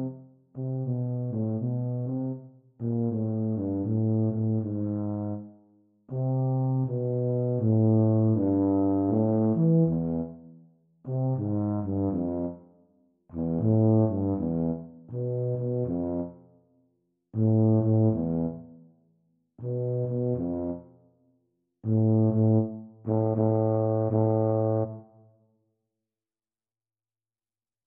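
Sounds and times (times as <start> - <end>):
E-flat tuba duet practice: 0.0 - 5.5, 6.1 - 10.5, 11.1 - 12.7, 13.3 - 16.4, 17.4 - 18.8, 19.6 - 20.9, 21.8 - 25.1.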